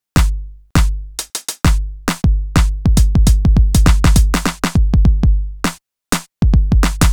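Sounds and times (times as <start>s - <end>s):
drum groove at 101 bpm: 0.0s - 7.1s.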